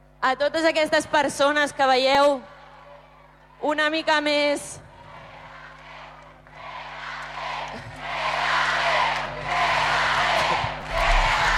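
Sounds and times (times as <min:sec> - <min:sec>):
speech: 0:00.2 - 0:02.5, 0:03.6 - 0:04.8
crowd chanting in stadium: 0:05.0 - 0:11.5.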